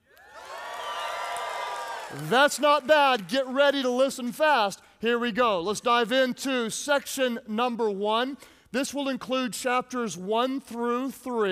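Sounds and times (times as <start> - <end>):
audience shouting and cheering: 0.2 - 3.3
speech: 2.1 - 11.5.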